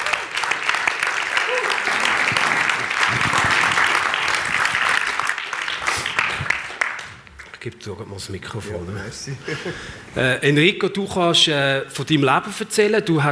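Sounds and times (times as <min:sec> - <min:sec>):
audience applause: 0:00.0 - 0:07.5
speech: 0:07.6 - 0:13.3.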